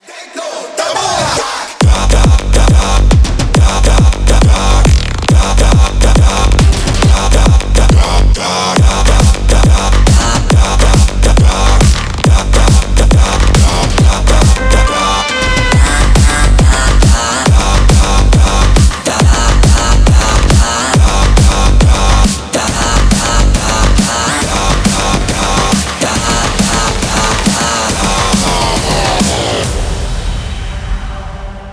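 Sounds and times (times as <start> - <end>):
techno music: 0.0 - 31.7.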